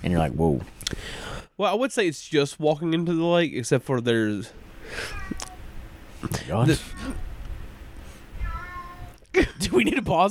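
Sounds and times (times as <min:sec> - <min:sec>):
speech: 0:00.0 - 0:05.4, 0:06.2 - 0:07.2, 0:09.4 - 0:10.2
cat meowing: 0:08.4 - 0:09.2.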